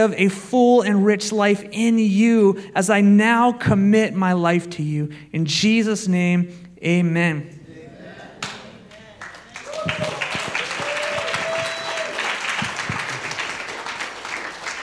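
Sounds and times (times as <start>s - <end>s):
speech: 0.0s - 7.6s
audience applause: 8.4s - 14.8s.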